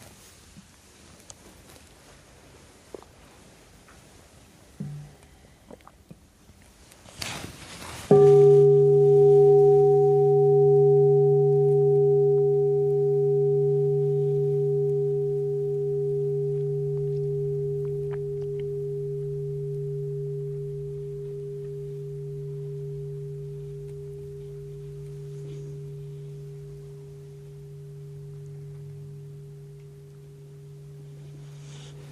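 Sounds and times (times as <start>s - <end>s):
meditation bell ringing: 8.1s - 32.1s.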